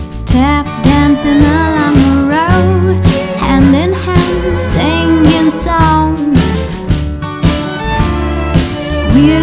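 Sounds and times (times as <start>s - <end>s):
emotional soundtrack music: 0.1s - 9.4s.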